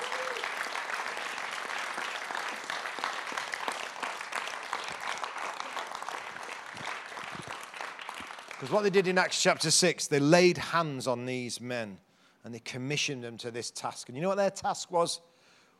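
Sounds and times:
audience applauding: 0.0s - 9.2s
speech: 8.6s - 15.3s.

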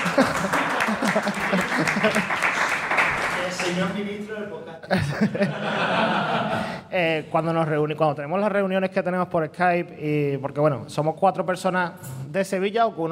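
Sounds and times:
laughter: 0.0s - 3.8s, 4.8s - 6.8s
applause for a graduate: 0.0s - 4.1s
speech: 3.8s - 13.1s.

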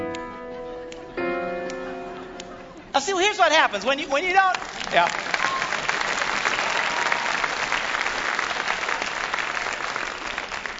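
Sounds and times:
speech: 3.0s - 5.3s
audience applause: 4.4s - 10.7s.

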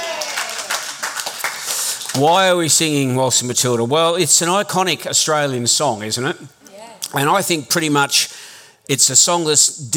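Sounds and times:
group of people clapping: 0.0s - 2.8s
speech: 2.1s - 9.9s.

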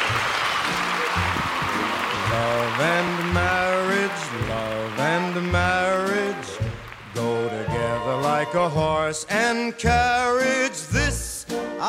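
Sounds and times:
crowd applause: 0.0s - 8.8s
music with a clear melody: 0.0s - 11.8s
speech: 8.4s - 11.1s.

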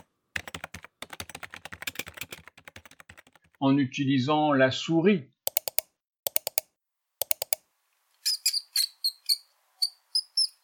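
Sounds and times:
typing on a computer keyboard: 0.0s - 3.6s, 5.5s - 6.6s, 7.2s - 7.6s
speech: 3.6s - 5.3s.

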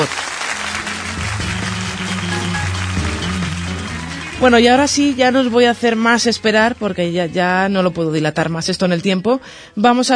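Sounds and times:
speech: 0.0s - 0.2s, 4.4s - 10.1s
recorded applause sound effect: 0.0s - 6.8s.

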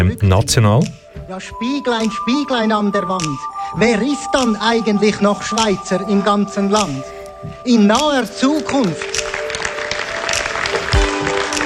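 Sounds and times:
speech: 0.0s - 9.2s
crowd clapping at a political rally: 7.9s - 11.6s.

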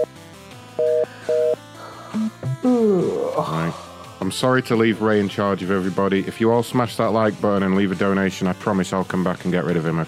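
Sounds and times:
electronic dialing tones from a new phone: 0.8s - 1.6s
speech: 2.7s - 10.0s.

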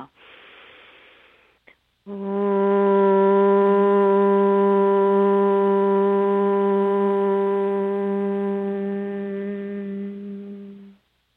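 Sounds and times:
chanting Om, sustained vibrating tone: 2.1s - 11.0s.

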